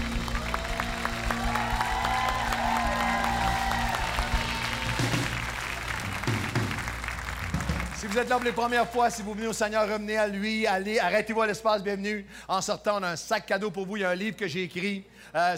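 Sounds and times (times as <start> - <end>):
church congregation clapping in an ovation at a morning resurrection service: 0.0 - 9.6
speech: 8.0 - 15.5.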